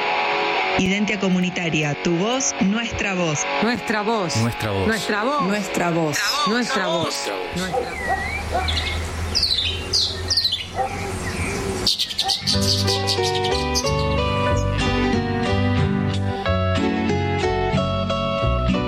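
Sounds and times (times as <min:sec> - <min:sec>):
speech: 0:00.8 - 0:09.1, 0:12.4 - 0:14.0
bright melodic music bed: 0:03.4 - 0:08.4, 0:12.4 - 0:18.8
birds chirping and trilling at dawn in Merlo: 0:05.0 - 0:15.4.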